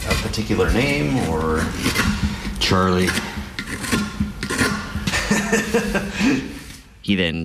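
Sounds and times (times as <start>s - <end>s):
speech: 0.4s - 3.3s, 5.4s - 7.4s
knife shaving a block of wood: 0.7s - 4.9s
laughter: 5.0s - 6.8s.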